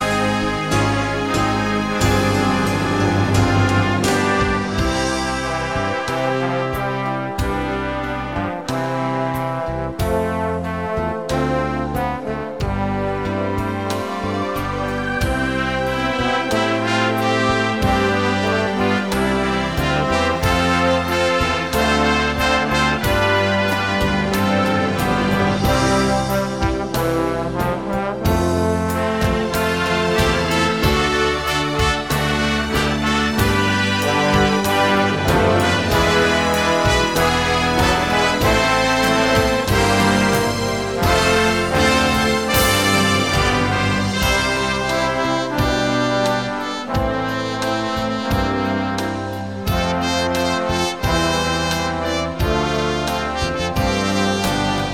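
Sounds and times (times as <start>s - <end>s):
brass medley of worship songs: 0.0s - 54.9s.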